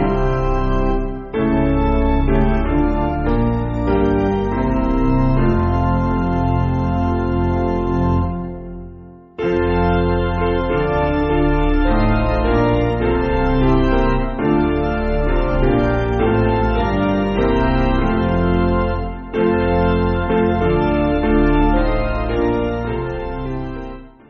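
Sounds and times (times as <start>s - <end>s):
piano piece: 0.0s - 24.2s.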